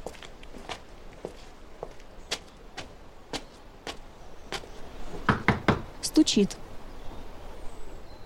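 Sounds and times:
man's footsteps crunching while walking up to a house: 0.0s - 4.7s
speech: 6.2s - 6.6s.

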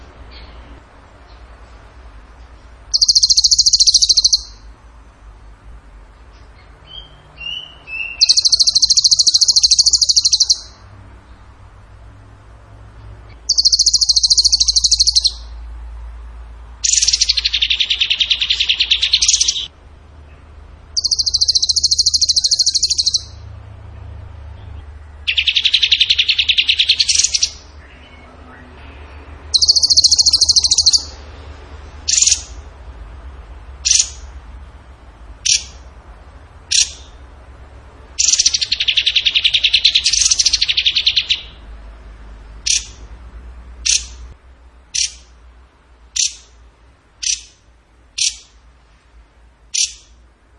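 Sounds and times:
bird trilling: 2.9s - 4.7s, 6.6s - 10.9s, 13.3s - 15.6s, 16.8s - 19.7s, 20.9s - 23.4s, 25.2s - 28.3s, 29.5s - 31.2s, 32.0s - 32.6s, 33.8s - 34.3s, 35.4s - 35.9s, 36.7s - 37.2s, 38.2s - 41.6s, 42.6s - 43.1s, 43.8s - 44.2s, 44.9s - 45.3s, 46.1s - 46.6s, 47.2s - 47.6s, 48.2s - 48.6s, 49.7s - 50.2s.

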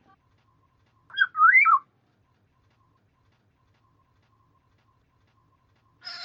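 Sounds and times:
black-naped oriole fluty whistled phrases: 1.1s - 1.9s.

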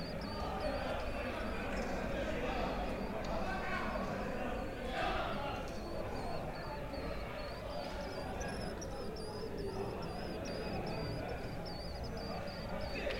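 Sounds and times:
swallow twittering: 0.0s - 13.1s.

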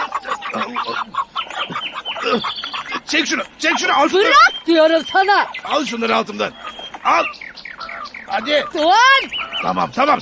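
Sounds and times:
person imitating chicken clucking: 0.0s - 3.1s
speech: 0.5s - 1.3s, 2.2s - 7.4s, 8.3s - 10.1s.

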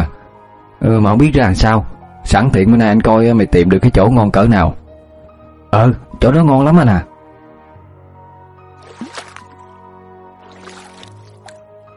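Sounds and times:
speech: 0.8s - 4.8s, 5.7s - 7.1s
paddle strokes of a small boat on a river: 8.8s - 9.6s, 10.4s - 11.6s.

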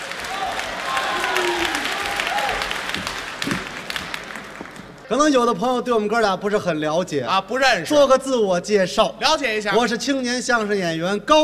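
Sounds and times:
audience applause at a traditional Chinese crosstalk comedy show: 0.0s - 5.1s
speech: 5.1s - 11.4s.

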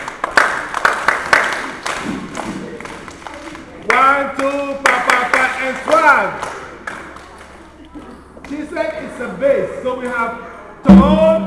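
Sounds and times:
group clapping for a singer: 0.0s - 8.7s
speech: 6.1s - 6.5s, 8.7s - 11.4s.

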